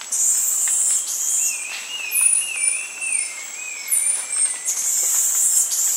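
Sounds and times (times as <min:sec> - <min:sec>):
Snethlage's marmoset whistling in a South American rainforest: 0:00.2 - 0:05.9.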